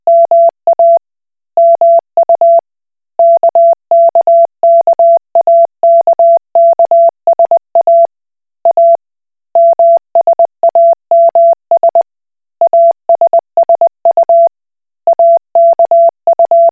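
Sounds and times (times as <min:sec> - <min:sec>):
Koch Morse code beeps: 0:00.1 - 0:01.0, 0:01.6 - 0:02.6, 0:03.2 - 0:08.1, 0:08.7 - 0:09.0, 0:09.6 - 0:12.0, 0:12.6 - 0:14.5, 0:15.1 - 0:16.7.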